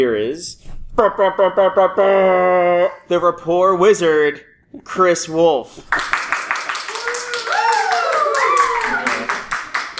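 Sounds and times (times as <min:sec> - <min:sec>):
speech: 0:00.0 - 0:06.2
applause sound effect from a soundboard: 0:05.9 - 0:09.9
whooping cheer-like tone: 0:06.9 - 0:09.4.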